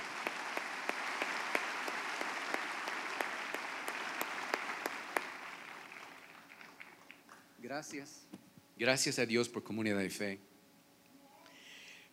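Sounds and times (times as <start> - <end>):
audience applause: 0.0 - 7.5
speech: 7.7 - 10.5.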